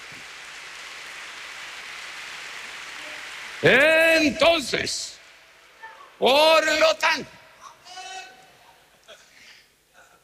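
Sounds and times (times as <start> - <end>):
audience applause: 0.0 - 5.4
speech: 3.6 - 5.2, 6.2 - 7.4.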